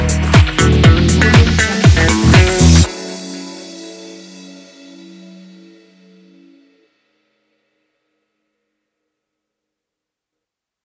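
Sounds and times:
disco music: 0.0s - 5.5s.

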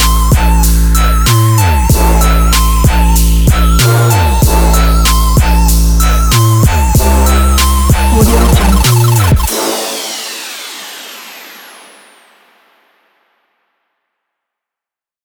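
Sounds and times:
trap beat: 0.0s - 10.2s.

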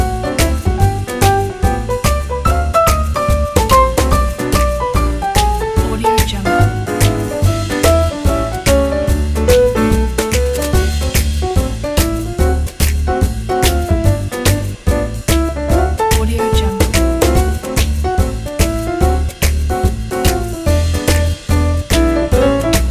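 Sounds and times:
vintage swing jazz trio: 0.0s - 22.9s.

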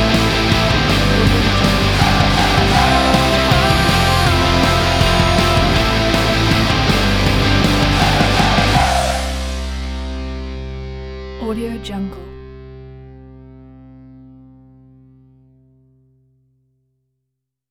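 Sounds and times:
motivational pop rock: 0.0s - 11.1s.

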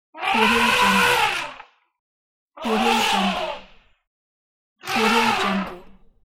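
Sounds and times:
elephant: 0.2s - 1.7s, 2.6s - 3.8s, 4.8s - 6.2s.

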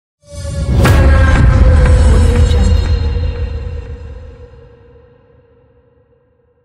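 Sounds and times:
cinematic trailer teaser hit: 0.3s - 5.0s.

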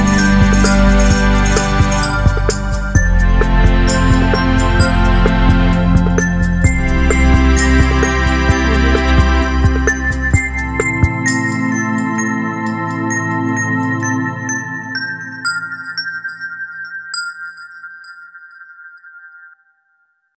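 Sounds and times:
Christmas carol: 0.0s - 14.9s.

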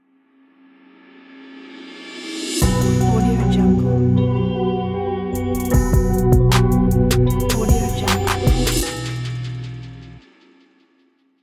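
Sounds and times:
mysterious trap music ident: 2.6s - 4.5s, 5.4s - 10.2s.

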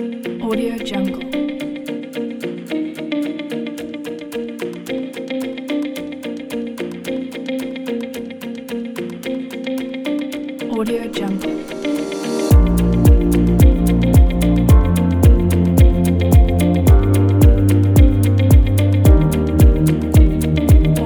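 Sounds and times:
happy corporate music kit: 11.4s - 21.0s.

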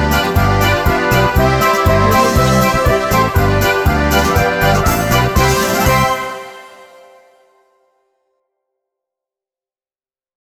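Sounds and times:
German polka music: 0.0s - 7.4s.

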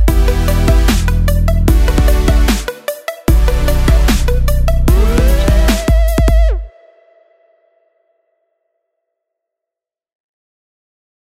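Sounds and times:
dubstep music: 0.0s - 7.2s.

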